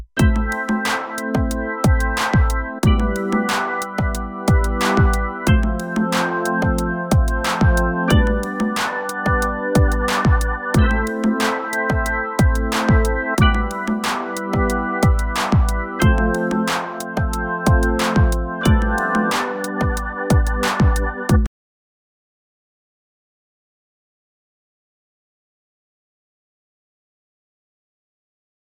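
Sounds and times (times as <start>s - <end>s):
Roland X6 plugin synthesizer: 0.2s - 21.5s.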